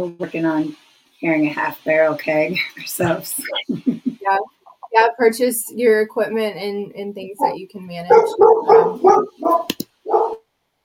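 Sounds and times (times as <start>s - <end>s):
speech: 0.0s - 9.8s
dog barking: 7.4s - 10.4s
sharp clicks: 9.6s - 10.0s.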